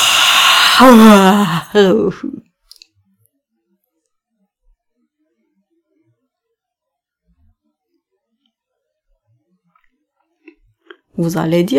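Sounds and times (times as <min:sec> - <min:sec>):
person yawning: 0:00.0 - 0:01.8
speech: 0:00.8 - 0:02.5, 0:11.2 - 0:11.7.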